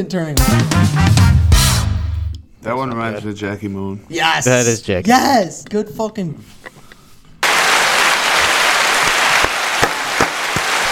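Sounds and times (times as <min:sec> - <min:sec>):
speech: 0:00.0 - 0:01.3, 0:02.6 - 0:06.8
crowd applause from a soundboard pad: 0:07.4 - 0:10.9.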